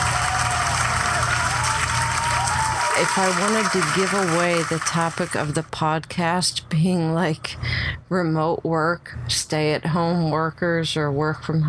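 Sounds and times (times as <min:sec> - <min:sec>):
applause: 0:00.0 - 0:05.6
speech: 0:03.0 - 0:11.6.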